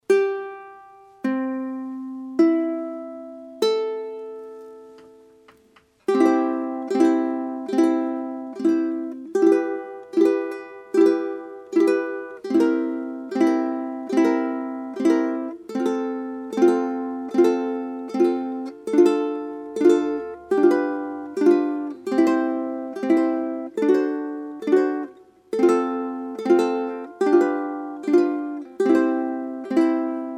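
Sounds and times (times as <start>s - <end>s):
ukulele: 0.0s - 30.3s.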